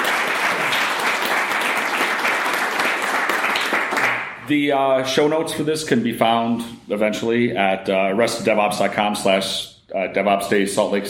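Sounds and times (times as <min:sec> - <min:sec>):
audience applause at DevOps Days Salt Lake City: 0:00.0 - 0:04.4
speech: 0:04.5 - 0:11.0.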